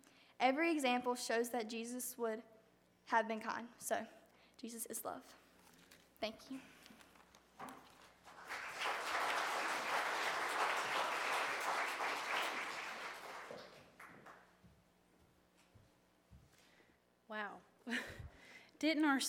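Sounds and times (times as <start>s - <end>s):
speech: 0.4s - 5.4s, 6.2s - 6.8s, 18.8s - 19.2s
audience applauding: 8.1s - 14.4s.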